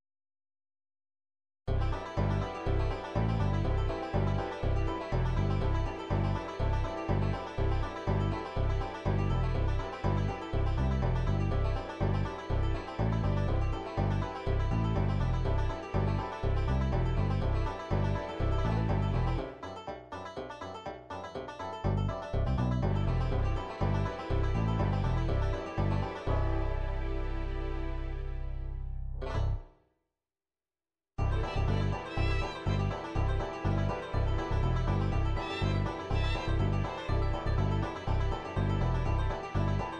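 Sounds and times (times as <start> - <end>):
MIDI bluegrass music: 1.7 - 29.6, 31.2 - 39.9.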